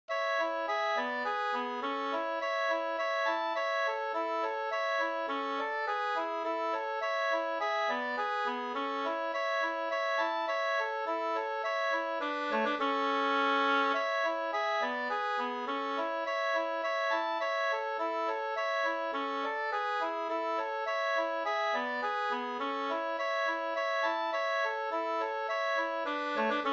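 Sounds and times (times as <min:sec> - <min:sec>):
slangpolska folk dance tune: 0:00.1 - 0:26.7.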